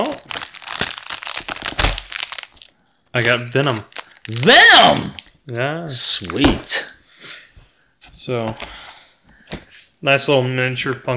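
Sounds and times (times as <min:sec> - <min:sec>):
wrapping tearing: 0:00.0 - 0:05.4, 0:06.1 - 0:07.0
speech: 0:03.1 - 0:06.9, 0:08.2 - 0:08.8, 0:09.5 - 0:11.1.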